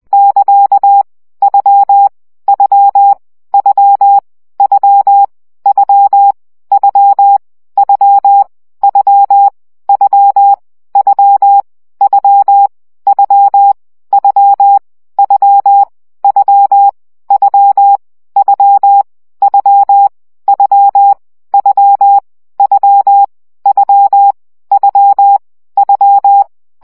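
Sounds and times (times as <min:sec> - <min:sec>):
CW Morse code practice at 17 baud: 0:00.1 - 0:26.8.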